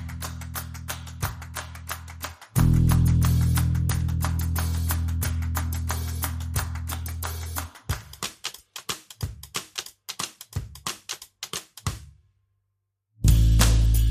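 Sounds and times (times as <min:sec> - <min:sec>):
bass: 0:00.0 - 0:07.9, 0:13.2 - 0:14.1
drums: 0:02.6 - 0:12.2, 0:13.2 - 0:14.1.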